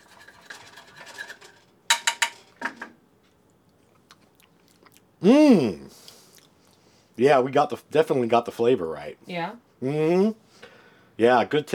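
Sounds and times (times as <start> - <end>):
cutlery-like clicks and scrapes: 0.0 - 2.9
chewing and crunchy bites of a homemade dish: 3.3 - 5.1
speech: 5.2 - 5.8, 7.2 - 10.4, 11.2 - 11.7
person humming appreciatively: 5.2 - 5.9.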